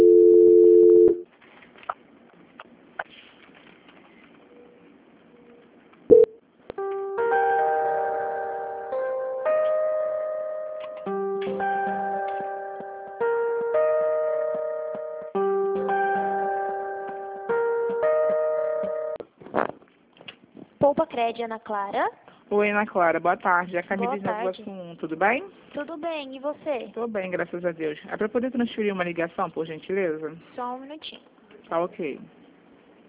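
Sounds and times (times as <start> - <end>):
steady telephone tone: 0.0 - 1.2
telephone hold music with repeating bright synth notes: 6.1 - 19.2
speech: 21.2 - 32.4.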